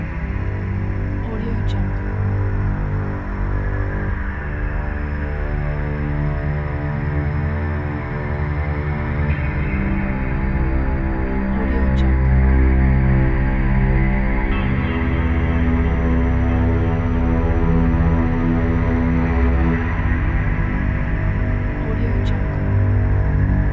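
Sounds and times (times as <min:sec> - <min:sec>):
dark atmospheric soundscape: 0:00.0 - 0:23.7.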